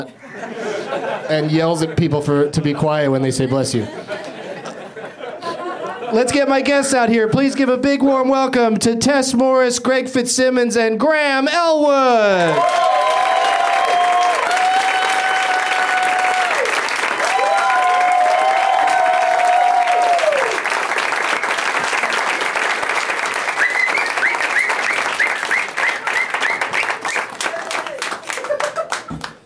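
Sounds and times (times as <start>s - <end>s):
speech: 0.0s - 4.2s, 6.1s - 12.9s
laughter: 0.0s - 6.6s, 27.5s - 29.3s
audience applause: 12.4s - 29.4s
long high whistles: 23.5s - 27.4s.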